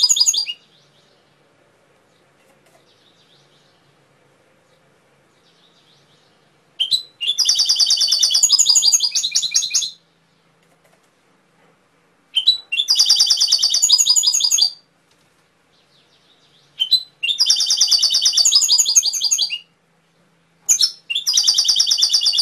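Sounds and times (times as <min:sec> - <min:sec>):
canary singing trilled phrases: 0:00.0 - 0:00.9, 0:06.8 - 0:10.0, 0:12.3 - 0:14.8, 0:16.0 - 0:19.7, 0:20.7 - 0:22.4.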